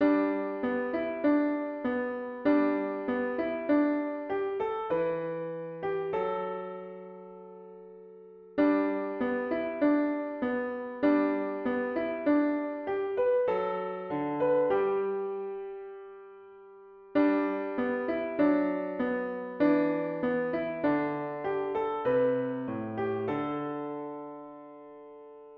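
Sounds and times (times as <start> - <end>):
piano: 0.0 - 25.5.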